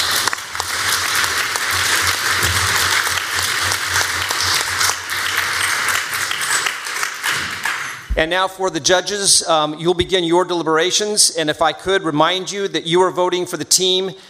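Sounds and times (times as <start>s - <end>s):
crowd applauding: 0.0s - 8.1s
speech: 8.2s - 14.2s.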